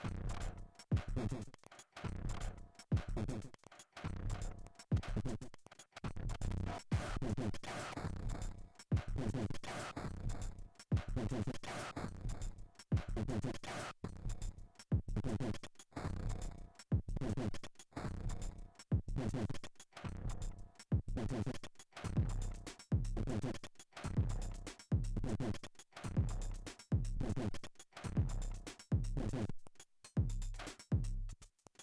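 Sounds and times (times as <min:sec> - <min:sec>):
noise drum: 0:00.0 - 0:31.6.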